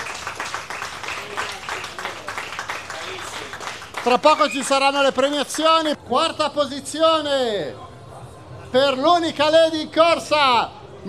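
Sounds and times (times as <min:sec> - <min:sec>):
crowd applauding: 0:00.0 - 0:05.9
speech: 0:04.0 - 0:07.9, 0:08.7 - 0:11.0.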